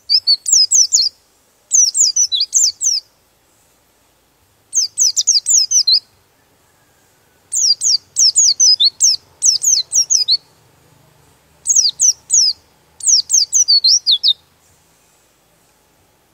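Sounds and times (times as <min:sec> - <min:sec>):
songbird singing high quick chattering and whistled phrases: 0:00.0 - 0:03.2, 0:04.7 - 0:10.6, 0:11.6 - 0:15.3.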